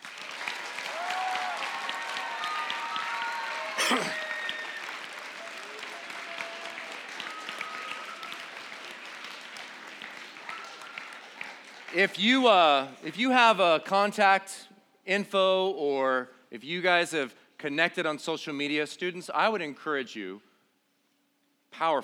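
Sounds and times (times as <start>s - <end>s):
applause from students: 0.0s - 13.1s
speech: 3.9s - 4.2s, 12.0s - 20.5s, 21.7s - 22.0s.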